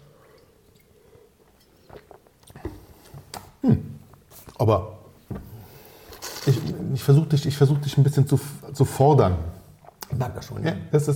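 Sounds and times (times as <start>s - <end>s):
wine being sipped and tasted with wet slurping: 0.2s - 3.1s, 6.0s - 7.0s
speech: 3.6s - 3.9s, 4.6s - 5.0s, 7.0s - 11.1s.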